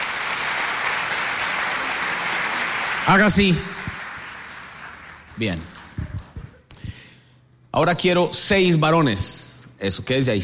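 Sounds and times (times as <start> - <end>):
crowd clapping: 0.0 - 6.6
speech: 3.1 - 3.7, 5.4 - 5.8, 7.8 - 10.4.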